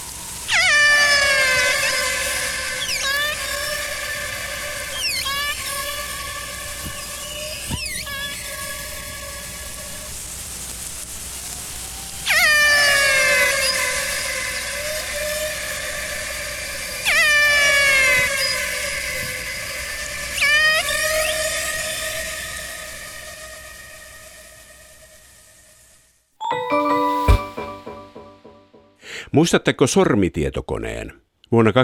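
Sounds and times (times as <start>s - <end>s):
steady hiss: 0.0s - 26.3s
killer whale calls: 0.5s - 10.1s, 12.2s - 25.3s
speech: 29.4s - 31.8s.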